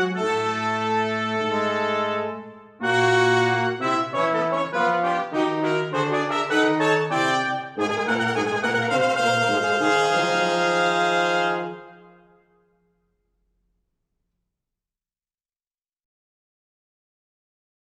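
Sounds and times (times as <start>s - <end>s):
brass fanfare: 0.0s - 12.6s.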